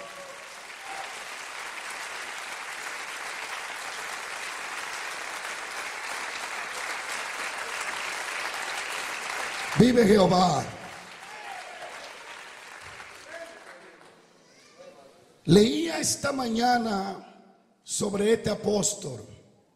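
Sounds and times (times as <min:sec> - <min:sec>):
audience applause: 0:00.0 - 0:14.3
speech: 0:09.8 - 0:10.8, 0:15.5 - 0:19.4.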